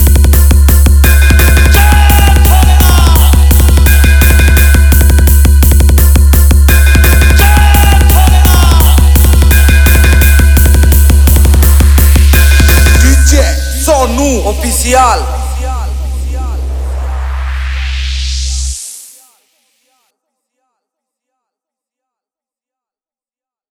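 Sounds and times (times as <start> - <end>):
competition mix dance beat: 0.0 - 18.8.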